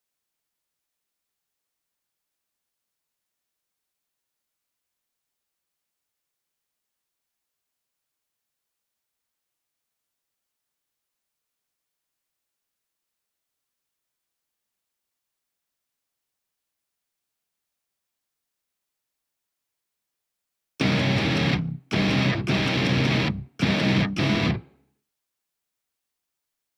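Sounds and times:
guitars: 20.8 - 24.8.

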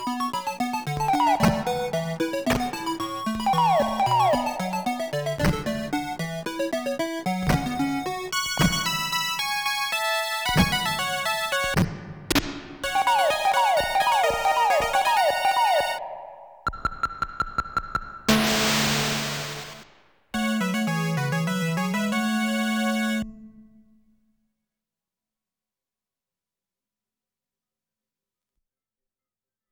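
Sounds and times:
game background music: 0.0 - 16.7, 18.0 - 23.8.

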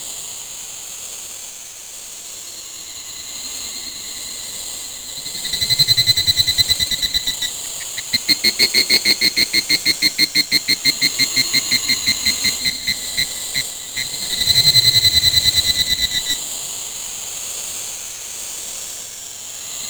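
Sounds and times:
cricket ambience: 3.9 - 16.4.

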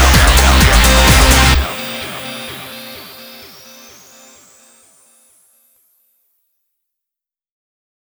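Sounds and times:
drum music: 0.0 - 2.1.

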